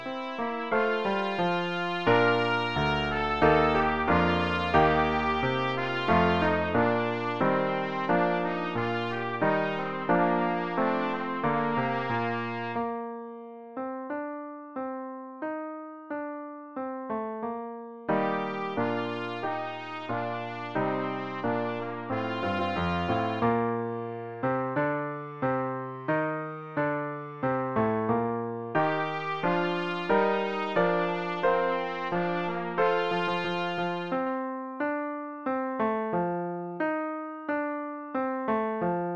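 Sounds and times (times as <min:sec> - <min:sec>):
piano: 0:00.0 - 0:39.1
trumpet playing a hymn: 0:00.1 - 0:13.0, 0:18.1 - 0:23.7, 0:28.8 - 0:34.3.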